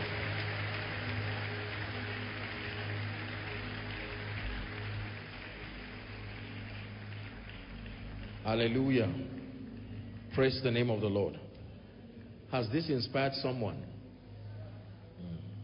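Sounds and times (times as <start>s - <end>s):
audience applause: 0.0s - 9.9s
speech: 8.4s - 9.4s, 10.4s - 11.4s, 12.5s - 14.0s.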